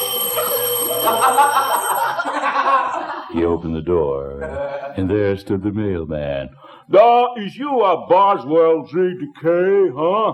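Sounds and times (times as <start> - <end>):
doorbell ringing: 0.0 - 2.8
laughter: 0.3 - 3.5, 4.2 - 5.1
speech: 1.0 - 1.8, 3.3 - 10.3.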